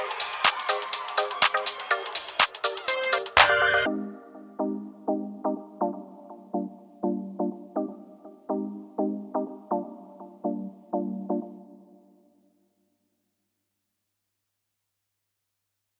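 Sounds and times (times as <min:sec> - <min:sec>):
instrumental music: 0:00.0 - 0:12.2.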